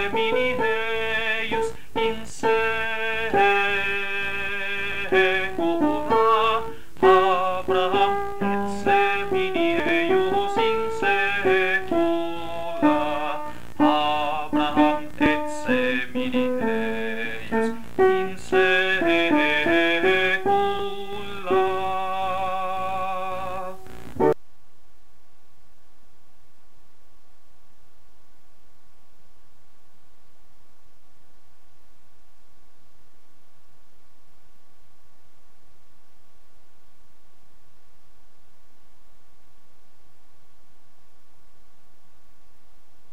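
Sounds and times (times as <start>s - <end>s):
choral sacred music: 0.0s - 23.9s.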